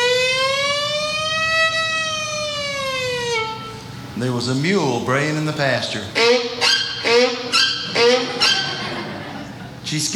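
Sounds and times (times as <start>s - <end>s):
ambulance siren going down the road: 0.0s - 3.8s, 6.2s - 8.9s
speech: 4.2s - 7.7s, 9.9s - 10.1s
laughter: 7.9s - 9.9s.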